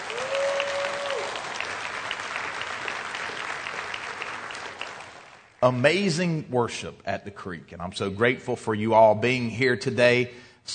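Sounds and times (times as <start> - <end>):
audience applause: 0.0 - 5.6
speech: 5.6 - 10.7.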